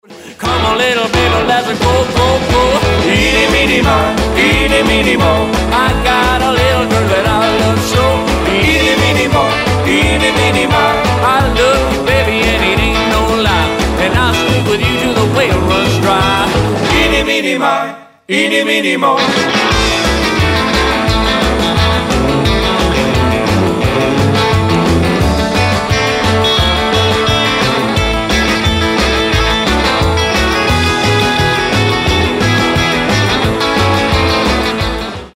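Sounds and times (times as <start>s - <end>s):
rockabilly party music: 0.0s - 35.3s.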